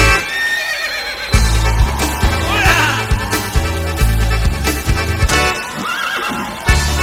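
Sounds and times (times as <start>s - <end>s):
horse whinny: 0.1s - 4.1s, 5.3s - 6.9s.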